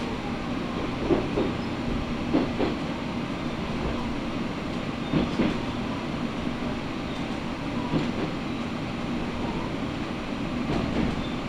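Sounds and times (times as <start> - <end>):
Matsuura Railway train carriage rumbling: 0.0 - 11.4.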